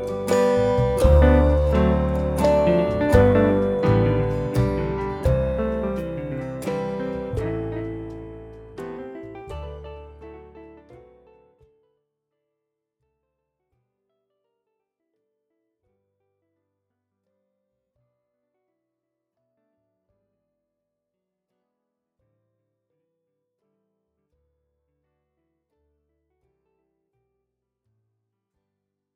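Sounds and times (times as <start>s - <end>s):
flute playing a slow waltz in G: 0.0s - 8.6s.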